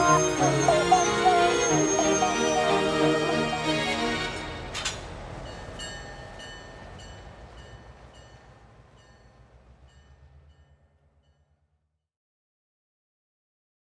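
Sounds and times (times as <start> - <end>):
R&B singer singing: 0.0 - 4.4.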